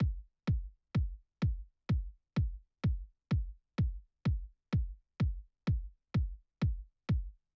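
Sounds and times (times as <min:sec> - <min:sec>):
kick drum: 0:00.0 - 0:07.5.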